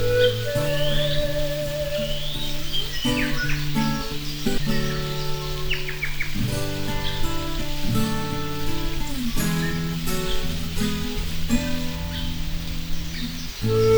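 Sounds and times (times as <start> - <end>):
pan flute: 0.0 - 4.8, 9.0 - 13.9
birds: 0.0 - 13.9.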